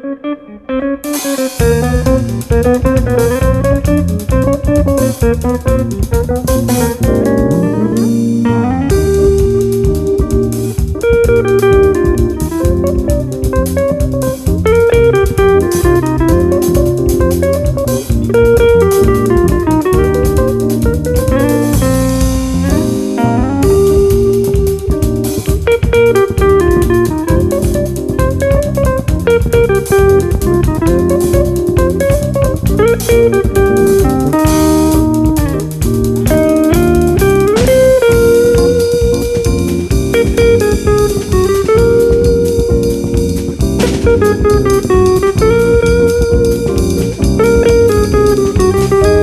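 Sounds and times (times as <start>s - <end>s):
jazz music: 0.5s - 49.2s.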